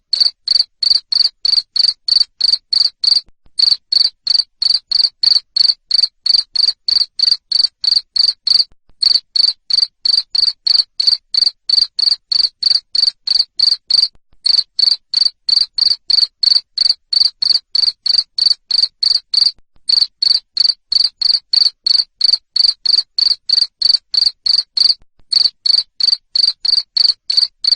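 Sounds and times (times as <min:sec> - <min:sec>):
cricket chirping: 0:00.1 - 0:27.7.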